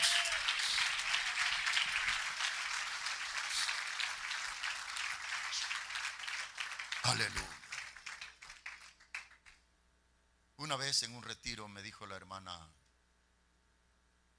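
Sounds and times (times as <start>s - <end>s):
audience applause: 0.0s - 9.6s
speech: 7.1s - 7.6s, 10.6s - 12.8s.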